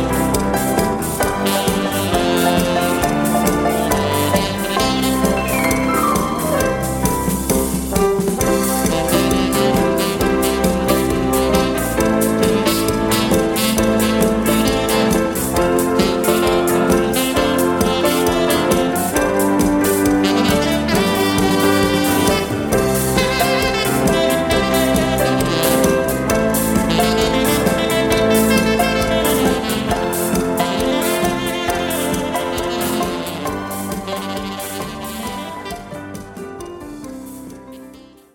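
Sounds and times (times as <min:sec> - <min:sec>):
saxophone: 0:00.0 - 0:36.7, 0:37.6 - 0:38.3.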